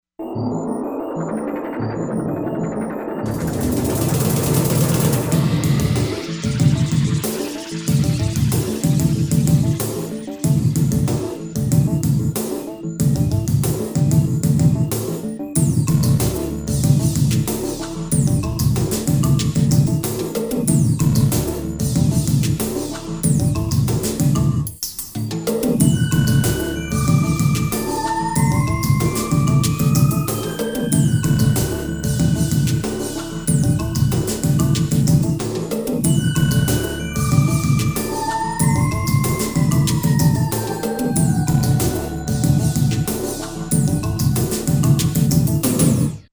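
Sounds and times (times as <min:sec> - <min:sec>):
Korg M1R synthesizer: 0:00.0 - 0:46.3.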